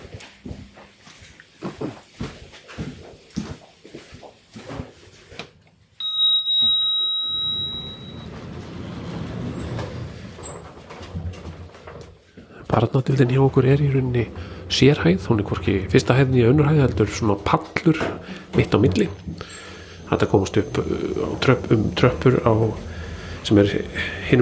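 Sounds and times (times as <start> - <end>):
lift bell ringing: 6.0 - 9.7, 18.3 - 24.4
lift running with a steady low mechanical hum: 6.0 - 24.4
speech: 12.8 - 24.4.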